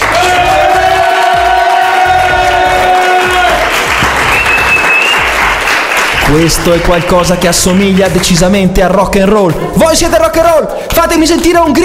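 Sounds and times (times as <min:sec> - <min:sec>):
audience applause: 0:00.0 - 0:08.4
speech: 0:06.3 - 0:11.8.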